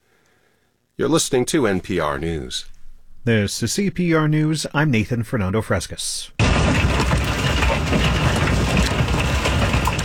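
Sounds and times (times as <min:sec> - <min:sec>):
speech: 0:01.0 - 0:07.2
hailstorm hitting: 0:06.4 - 0:10.0.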